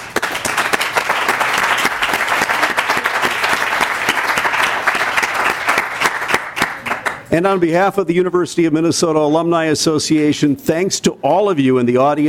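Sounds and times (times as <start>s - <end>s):
audience applause at University of Minnesota Alumni Association candidate forum: 0.0s - 7.3s
speech: 7.3s - 12.2s.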